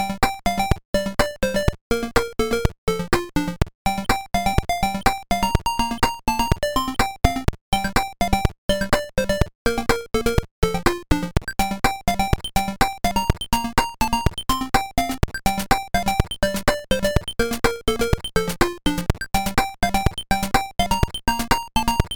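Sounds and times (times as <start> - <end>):
disco chiptune on PSG: 0.2 - 22.1.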